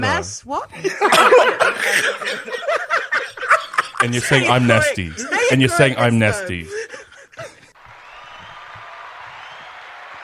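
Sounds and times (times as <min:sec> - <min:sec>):
speech: 0:00.0 - 0:02.8, 0:04.0 - 0:06.9
laughter: 0:00.7 - 0:07.8
applause: 0:07.8 - 0:10.2.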